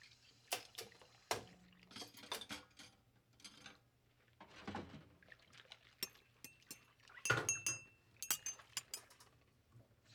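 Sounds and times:
quiet kitchen and office ambience: 0.5 - 3.9, 6.1 - 9.3.

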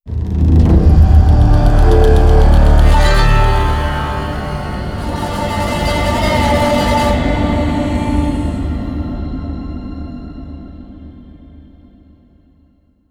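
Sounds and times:
round end sound: 0.5 - 9.1.

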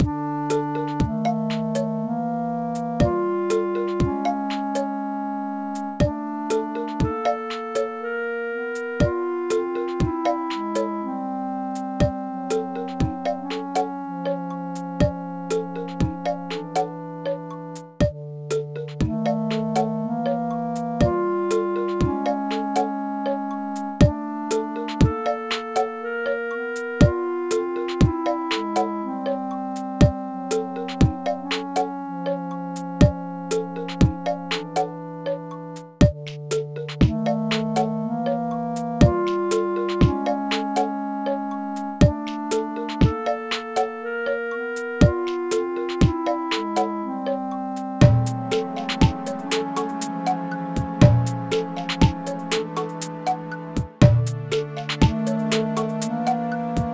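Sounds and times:
forest background music: 0.0 - 56.9.

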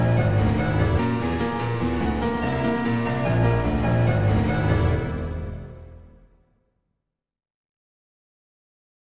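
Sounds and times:
combat piano music: 0.0 - 6.5.

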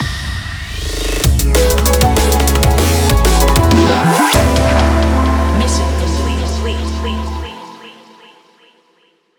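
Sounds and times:
mission complete music jingle: 1.4 - 7.6.

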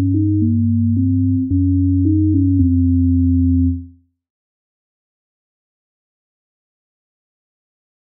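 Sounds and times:
synth: 0.0 - 3.9.

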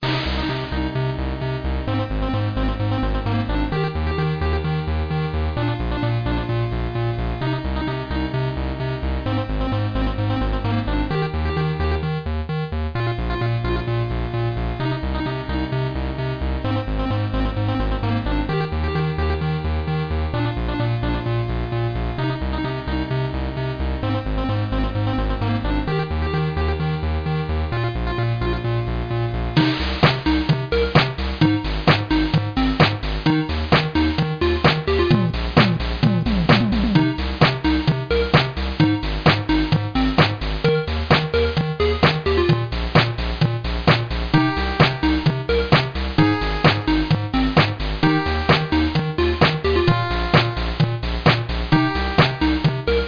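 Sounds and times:
NES chiptune music: 0.0 - 53.0.

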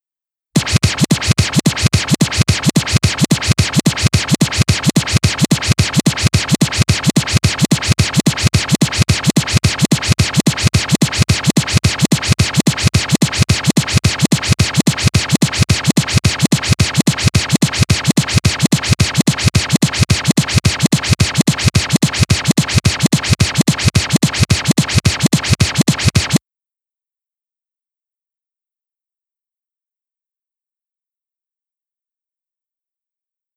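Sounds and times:
disc scratch: 0.6 - 26.4.

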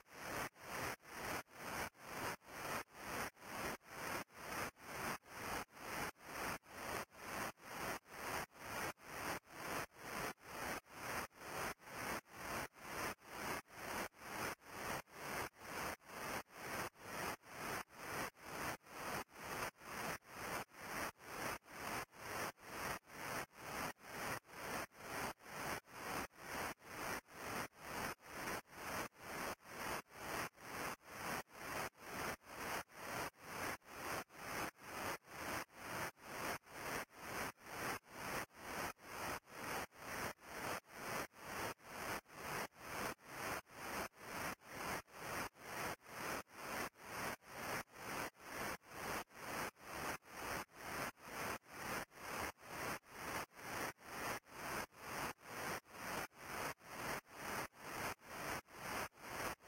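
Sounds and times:
noise: 0.0 - 59.6.

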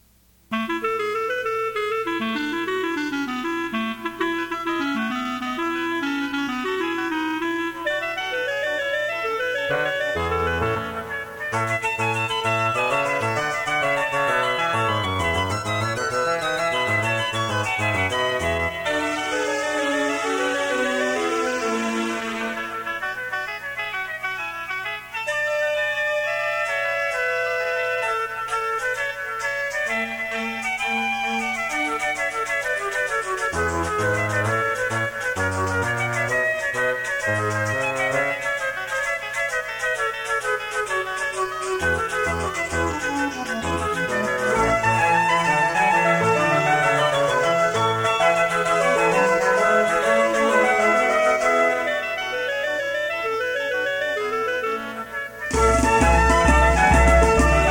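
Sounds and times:
baroque music: 0.5 - 57.6.

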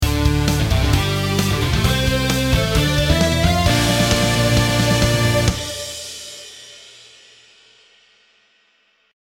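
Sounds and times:
stage clear jingle: 0.8 - 6.4.

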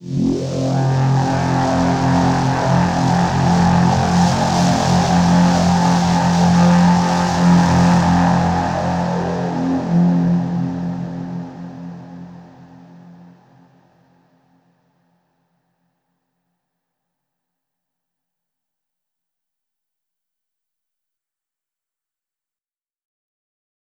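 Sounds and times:
overlay drone: 0.0 - 14.1.

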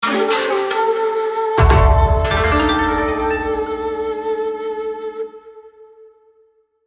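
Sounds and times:
fanfare: 0.1 - 4.6.

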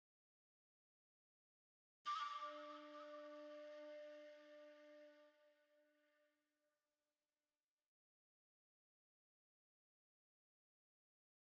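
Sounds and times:
flute: 2.1 - 6.4.

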